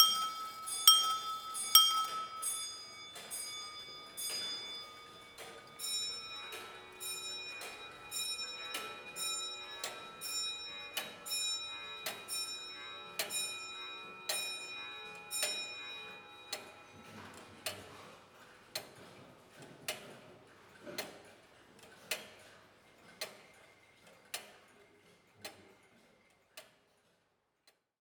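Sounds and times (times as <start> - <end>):
pendulum clocks: 0.0 - 20.2.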